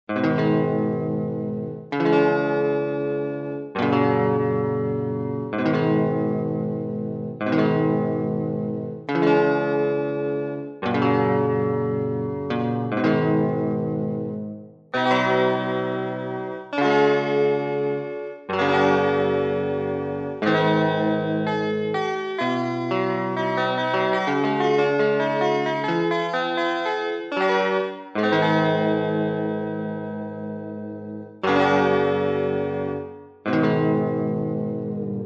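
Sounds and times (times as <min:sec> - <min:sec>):
electric guitar: 0:00.1 - 0:35.2.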